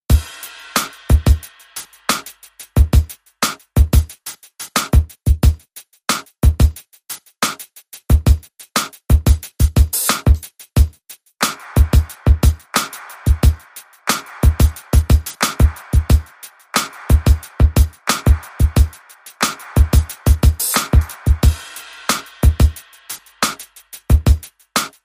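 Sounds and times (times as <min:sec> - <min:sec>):
beat: 0:00.1 - 0:05.6, 0:07.4 - 0:25.0.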